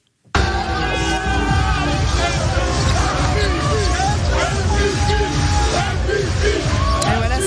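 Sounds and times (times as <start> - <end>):
basketball players cheering after winning a final: 0.3 - 7.4.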